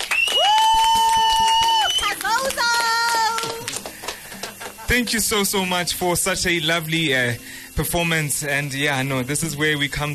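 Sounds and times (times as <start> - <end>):
audience applause: 0.0 - 5.0
speech: 4.9 - 10.1.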